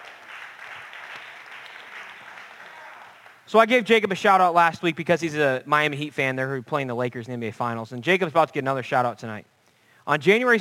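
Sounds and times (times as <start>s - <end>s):
audience round of applause: 0.0s - 3.4s
speech: 3.5s - 9.5s, 10.1s - 10.5s.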